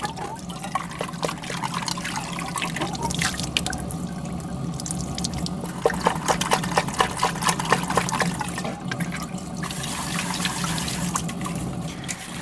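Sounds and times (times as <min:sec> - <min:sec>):
water running from a tap: 0:00.0 - 0:12.4.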